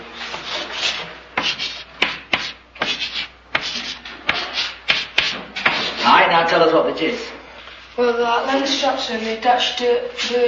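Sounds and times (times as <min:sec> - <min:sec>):
writing a word on a board: 0:00.3 - 0:06.0
speech: 0:06.3 - 0:07.4, 0:08.0 - 0:10.4.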